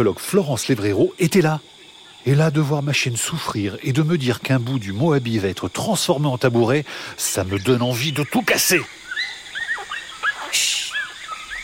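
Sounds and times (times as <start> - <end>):
speech: 0.0 - 9.0
bonobo calls: 9.0 - 11.6.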